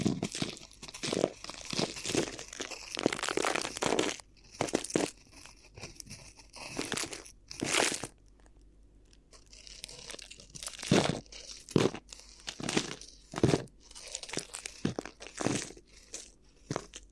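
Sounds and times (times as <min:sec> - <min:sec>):
crinkly ear massage crinkling and rustling: 0:00.0 - 0:17.1.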